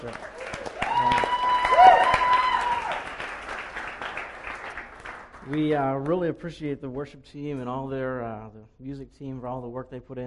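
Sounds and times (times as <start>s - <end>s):
church audience applause for the worship team: 0.0s - 5.8s
speech: 5.5s - 10.2s.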